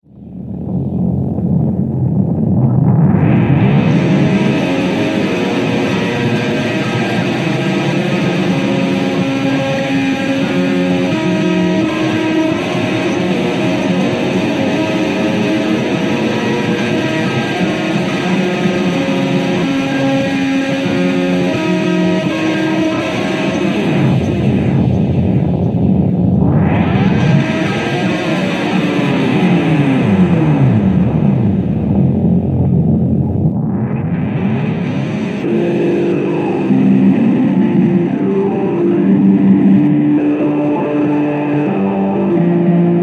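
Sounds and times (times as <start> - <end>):
bass loop through bass amp: 0.0 - 43.0.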